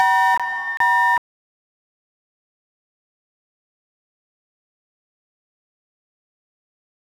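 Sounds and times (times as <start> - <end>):
sine wave tone: 0.0 - 1.2.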